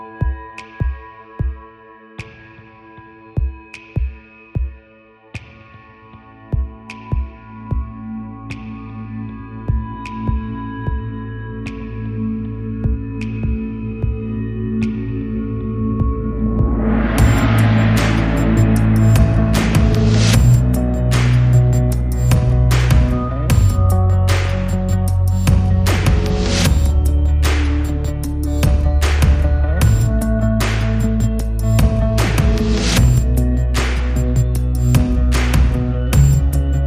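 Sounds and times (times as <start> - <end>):
drums: 3.4 - 4.8, 5.4 - 8.0, 16.0 - 36.8
bass: 7.6 - 36.8.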